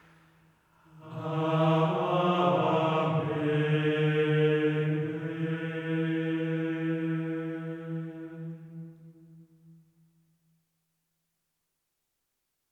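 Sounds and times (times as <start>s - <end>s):
Gregorian chant: 0.8s - 9.4s.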